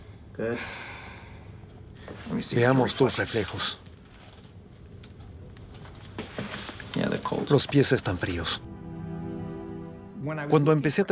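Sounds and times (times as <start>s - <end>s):
patient's deep breath during a Lyme disease medical exam: 0.0s - 1.6s
speech: 0.4s - 0.9s, 2.1s - 3.8s, 7.5s - 8.7s, 10.2s - 11.0s.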